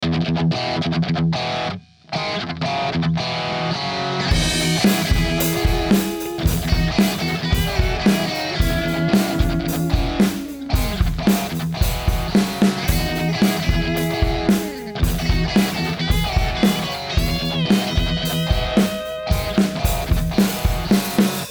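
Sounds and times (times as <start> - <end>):
guitar: 0.0 - 21.4.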